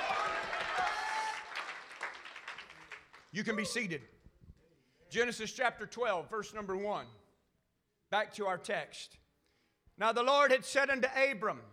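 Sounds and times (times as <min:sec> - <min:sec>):
church congregation clapping during a sermon: 0:00.0 - 0:03.8
speech: 0:03.3 - 0:04.2, 0:05.1 - 0:07.2, 0:08.1 - 0:09.2, 0:10.0 - 0:11.7.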